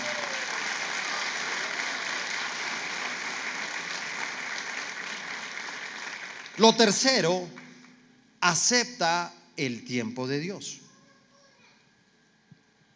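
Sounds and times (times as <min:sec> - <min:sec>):
audience applause: 0:00.0 - 0:07.0
speech: 0:06.6 - 0:07.6, 0:08.4 - 0:10.8.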